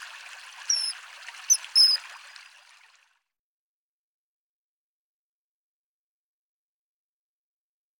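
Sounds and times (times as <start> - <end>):
common kingfisher calling with piercing whistles: 0.7 - 2.1.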